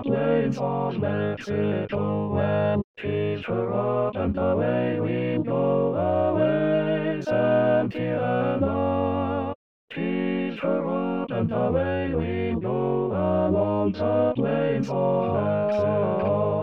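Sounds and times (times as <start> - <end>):
male voice singing in B: 0.0 - 16.6.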